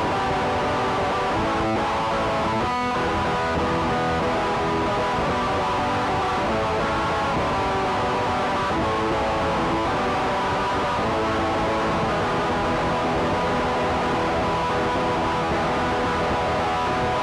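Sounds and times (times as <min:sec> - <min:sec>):
guitar warmup: 0:00.0 - 0:17.2.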